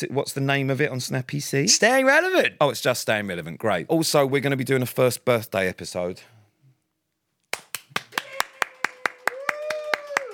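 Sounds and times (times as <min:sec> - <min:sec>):
speech: 0:00.0 - 0:06.4
slow half-hearted clapping: 0:07.5 - 0:10.3.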